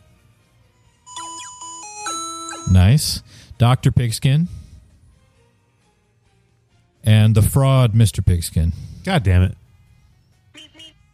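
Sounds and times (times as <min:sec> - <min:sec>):
quiz contestant buzz-in sound: 0:01.1 - 0:02.8
speech: 0:02.7 - 0:04.6, 0:07.1 - 0:09.6.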